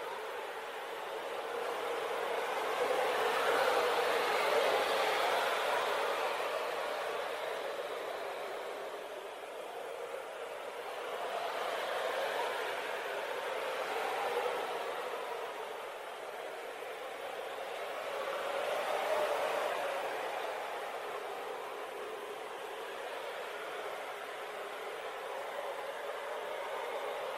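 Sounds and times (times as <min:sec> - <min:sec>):
gentle breeze: 0:00.0 - 0:27.3.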